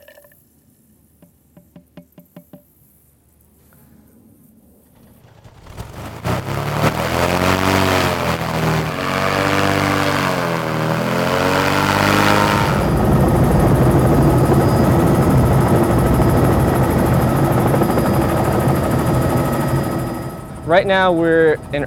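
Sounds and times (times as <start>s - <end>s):
helicopter: 4.8s - 21.8s
speech: 20.8s - 21.8s.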